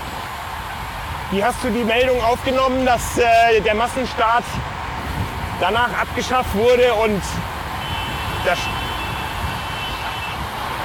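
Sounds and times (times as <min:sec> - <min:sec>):
road and wind noise: 0:00.0 - 0:10.8
speech: 0:01.3 - 0:04.8, 0:05.6 - 0:07.5, 0:08.4 - 0:08.8
car horn honking at cyclists on a road: 0:07.8 - 0:10.4.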